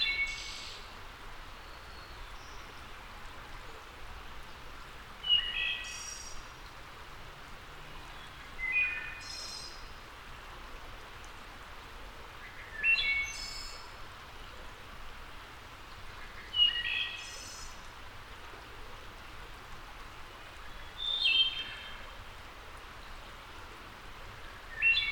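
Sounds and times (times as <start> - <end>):
wood thrush song: 0.0 - 1.0, 1.6 - 2.9, 5.2 - 6.5, 7.9 - 10.0, 12.4 - 14.0, 16.0 - 17.9, 20.6 - 22.0, 24.4 - 25.1
rushing background hiss: 0.0 - 25.1.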